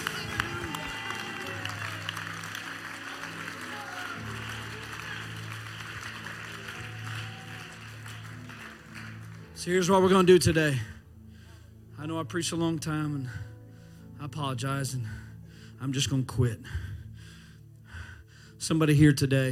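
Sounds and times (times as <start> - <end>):
audience clapping hands: 0.0 - 10.3
speech: 9.6 - 11.0, 12.1 - 13.5, 14.2 - 15.2, 15.8 - 16.9, 18.6 - 19.5.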